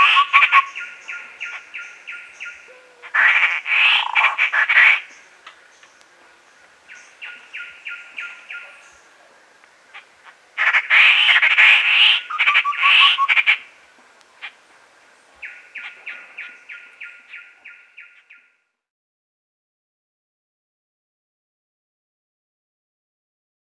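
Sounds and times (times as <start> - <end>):
Fluffy-backed tit-babbler calling: 0.0 - 18.5.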